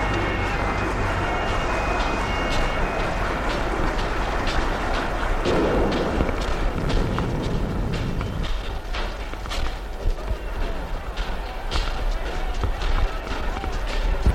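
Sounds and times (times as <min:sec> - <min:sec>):
running footsteps pounding up a staircase: 0:00.1 - 0:14.3.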